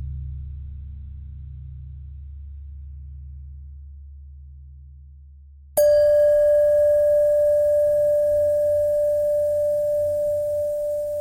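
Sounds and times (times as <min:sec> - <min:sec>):
bells ringing: 0:05.8 - 0:11.2.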